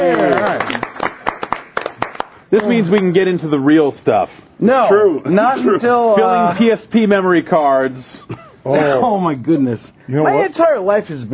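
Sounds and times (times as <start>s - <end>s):
applause: 0.0s - 3.1s
speech: 2.5s - 11.3s.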